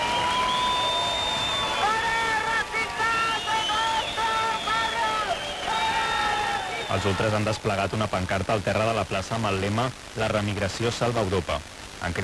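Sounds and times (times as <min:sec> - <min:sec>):
antifascist protesters shouting and chanting: 0:00.0 - 0:07.6
speech: 0:06.9 - 0:12.2.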